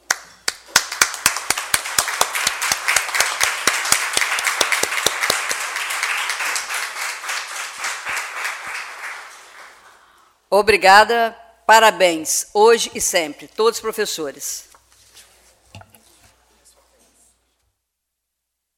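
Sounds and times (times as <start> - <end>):
audience applause for teachers: 0.0 - 10.1
speech: 10.5 - 14.7.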